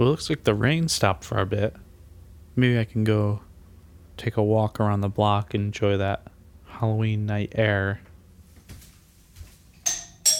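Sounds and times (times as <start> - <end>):
speech: 0.0 - 1.8, 2.6 - 3.5, 4.2 - 8.1
doorbell ringing: 9.9 - 10.3.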